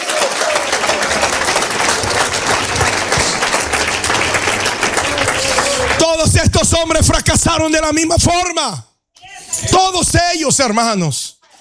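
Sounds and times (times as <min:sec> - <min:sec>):
audience clapping hands: 0:00.0 - 0:08.3
speech: 0:06.4 - 0:08.9, 0:09.6 - 0:11.3.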